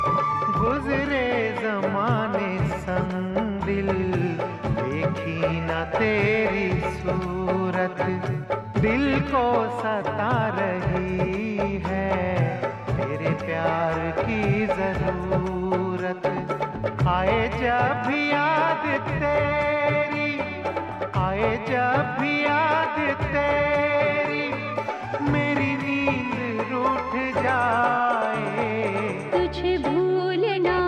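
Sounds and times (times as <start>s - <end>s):
old song: 0.0s - 30.8s.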